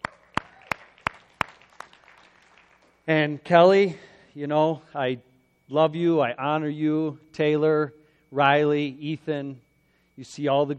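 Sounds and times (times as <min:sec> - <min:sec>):
sharp hand claps: 0:00.0 - 0:03.0
speech: 0:03.1 - 0:09.6, 0:10.2 - 0:10.7.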